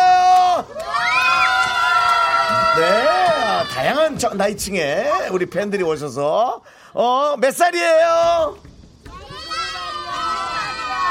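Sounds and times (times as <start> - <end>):
crowd of children cheering and shouting: 0.0 - 4.2, 9.1 - 11.0
speech: 3.8 - 8.7.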